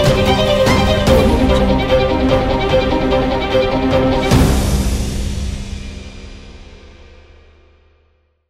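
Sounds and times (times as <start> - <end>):
violin: 0.0 - 6.2.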